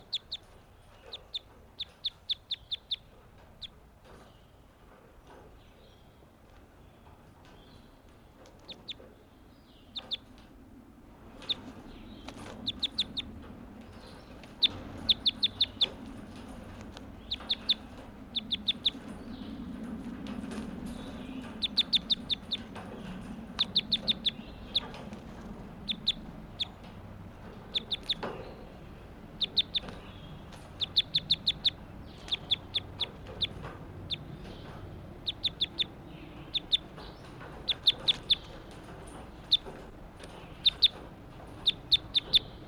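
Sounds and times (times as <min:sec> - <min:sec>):
bird clucking chirps: 0:00.0 - 0:04.6, 0:08.6 - 0:10.4, 0:11.3 - 0:42.6
low hum: 0:00.0 - 0:42.6.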